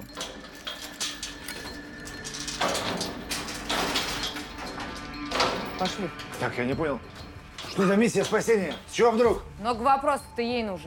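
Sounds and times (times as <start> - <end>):
cage door being opened: 0.1 - 9.0
speech: 5.8 - 10.8.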